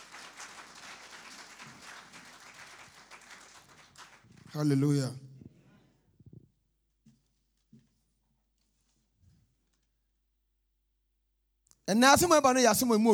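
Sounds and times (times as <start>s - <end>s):
audience clapping: 0.0s - 5.1s
speech: 4.5s - 5.2s, 11.9s - 13.1s.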